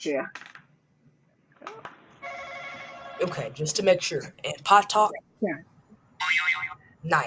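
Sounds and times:
speech: 0.0 - 0.5, 3.2 - 7.2
game show buzzer being pressed: 2.2 - 3.4.

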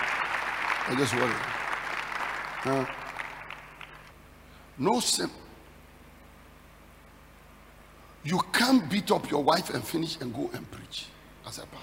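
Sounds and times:
audience applause: 0.0 - 4.1
speech: 0.9 - 1.6, 2.6 - 3.0, 4.8 - 5.4, 8.2 - 11.8.

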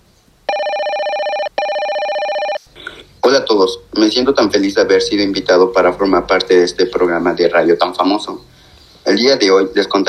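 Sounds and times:
telephone ringing for incoming call: 0.5 - 2.7
speech: 3.3 - 8.5, 9.1 - 10.0.

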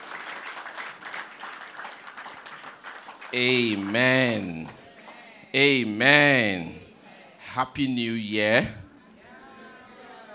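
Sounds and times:
audience applauding: 0.0 - 4.8
speech: 3.3 - 4.8, 5.5 - 6.8, 7.6 - 8.8.

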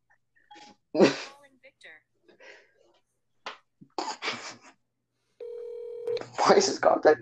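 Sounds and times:
Siri spoken voice: 1.0 - 2.0, 6.2 - 7.1
phone ringing tone of a call placed through Siri: 5.4 - 6.5
speech: 6.5 - 7.1.

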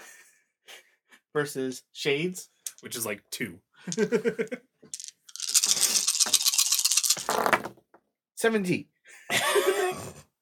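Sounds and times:
speech: 1.3 - 5.0, 7.4 - 7.8, 8.4 - 10.2
two dice rattling across a hard surface: 2.7 - 3.0, 4.9 - 7.7.

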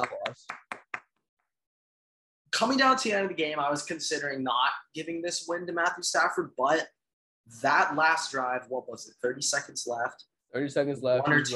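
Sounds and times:
clapping: 0.0 - 1.1
speech: 2.6 - 11.5.

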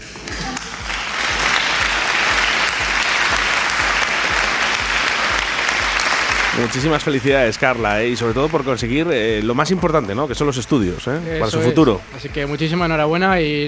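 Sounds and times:
crowd applauding: 0.0 - 12.1
low rhythmic thumps: 0.0 - 13.6
speech: 6.6 - 13.6.

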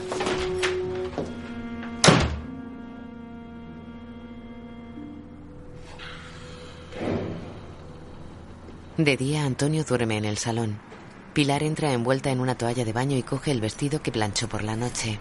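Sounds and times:
front door swinging shut: 0.0 - 2.5
low steady hum: 2.4 - 15.2
speech: 9.0 - 15.2.

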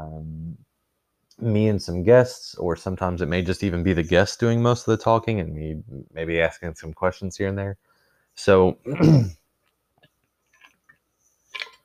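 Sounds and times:
speech: 1.4 - 9.4
throat clearing from a speaker with a dry throat: 8.8 - 9.4.

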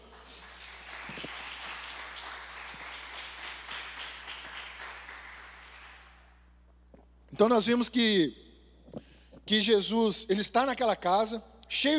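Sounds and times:
audience applause: 0.0 - 6.2
speech: 7.4 - 8.4, 9.5 - 11.9.

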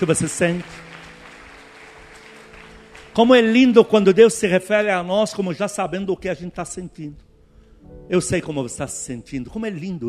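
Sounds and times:
speech: 0.0 - 1.0, 3.2 - 10.0
audience applause: 0.0 - 3.8.

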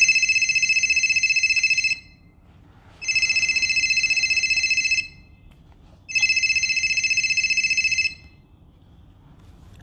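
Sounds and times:
telephone ringing while dialling a waiting caller: 0.0 - 2.3, 3.0 - 5.4, 6.1 - 8.5.

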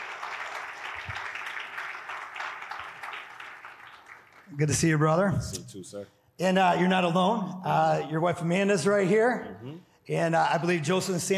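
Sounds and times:
church congregation applauding in welcome at Chicago West: 0.0 - 5.1
speech: 4.5 - 11.3.

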